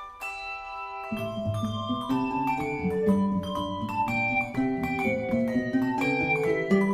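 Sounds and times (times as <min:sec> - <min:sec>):
march music: 0:00.3 - 0:06.9.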